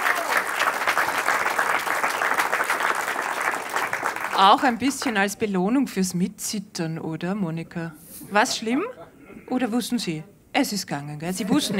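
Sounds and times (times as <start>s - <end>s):
audience applause: 0.0s - 5.1s
speech: 4.4s - 11.7s.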